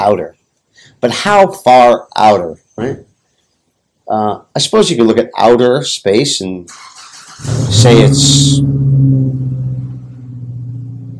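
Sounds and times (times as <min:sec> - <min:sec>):
speech: 0:00.0 - 0:03.1, 0:04.1 - 0:08.8
neighbour's truck engine starting up: 0:07.4 - 0:11.1.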